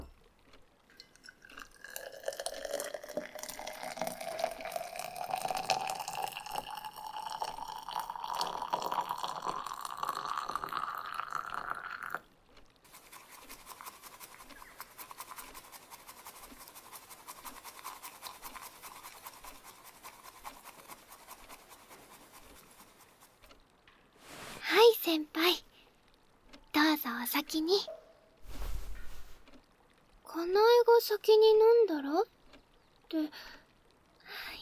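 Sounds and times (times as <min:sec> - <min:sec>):
hot water pouring while preparing tea: 0:00.7 - 0:12.2, 0:12.8 - 0:25.5, 0:28.4 - 0:30.1
rapid scratchy whisking of tea: 0:01.0 - 0:12.2, 0:12.8 - 0:23.6
speech: 0:27.1 - 0:28.0, 0:31.0 - 0:32.3, 0:33.2 - 0:33.6.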